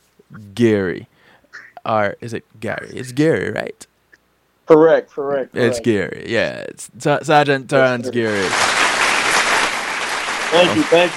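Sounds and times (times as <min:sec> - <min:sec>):
speech: 0:00.3 - 0:01.1, 0:01.8 - 0:03.9, 0:04.7 - 0:08.9, 0:10.5 - 0:11.1
audience clapping loudly: 0:08.1 - 0:11.1.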